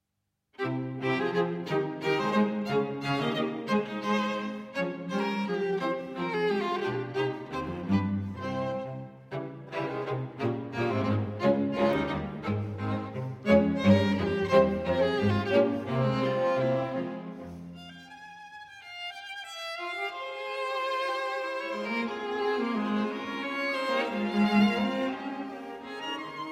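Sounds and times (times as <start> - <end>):
string quartet minuet in C minor: 0.6 - 26.5.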